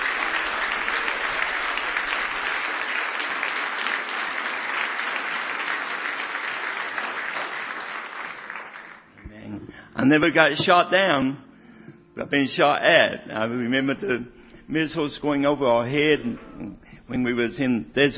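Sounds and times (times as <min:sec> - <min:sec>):
audience clapping hands in praise: 0:00.0 - 0:09.4
speech: 0:10.0 - 0:11.4, 0:12.2 - 0:18.1.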